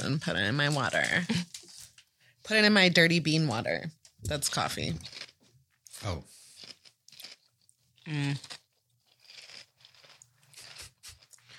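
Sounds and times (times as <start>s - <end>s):
speech: 0.1s - 1.6s, 2.5s - 5.3s, 6.0s - 6.4s, 8.0s - 8.6s
person crunching on Cheetos: 4.9s - 11.5s.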